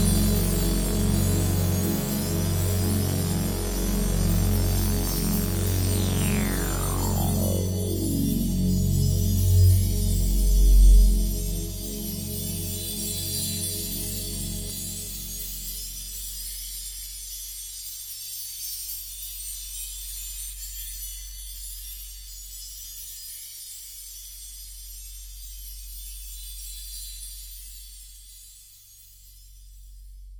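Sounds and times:
ambient intro music: 0.0 - 15.8.

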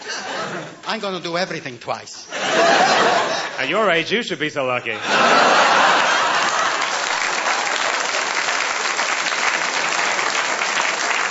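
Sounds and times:
laughter: 0.0 - 0.9, 2.3 - 4.0, 4.9 - 8.1
speech: 0.9 - 5.9
audience applause: 5.2 - 11.2.

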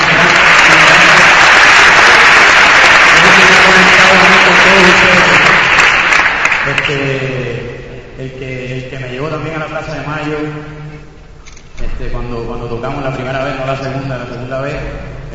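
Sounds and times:
audience applause: 0.0 - 7.2
speech: 9.4 - 10.7, 12.0 - 15.3.

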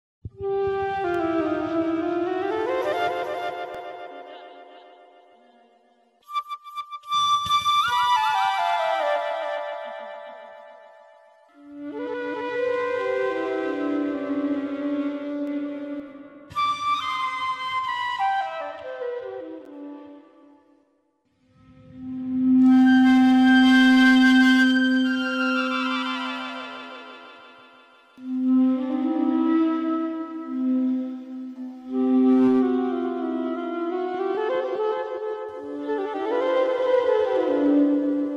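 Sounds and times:
flute: 0.3 - 38.3.

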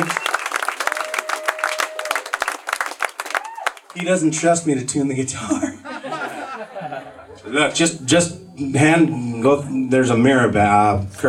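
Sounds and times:
audience applause: 0.0 - 4.1
speech: 4.0 - 5.8, 6.8 - 11.2
laughter: 5.4 - 9.4.

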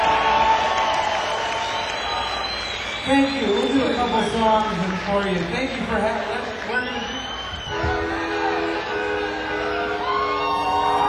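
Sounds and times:
audience applause in a club: 0.0 - 11.0
speech: 3.1 - 7.0.

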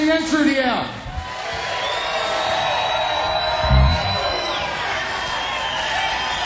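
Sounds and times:
concert crowd cheering for encore: 1.2 - 6.4
high shouts: 2.7 - 5.1.

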